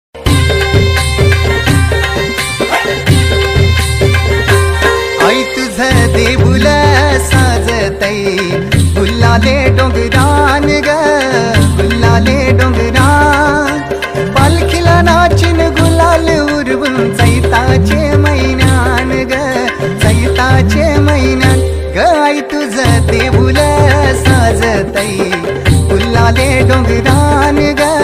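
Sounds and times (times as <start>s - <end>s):
Marathi devi song ringtone: 0.2s - 28.0s.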